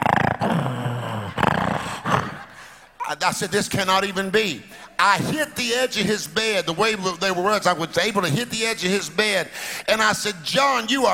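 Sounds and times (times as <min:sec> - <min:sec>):
person imitating loud snoring: 0:00.0 - 0:02.6
speech: 0:03.2 - 0:11.1.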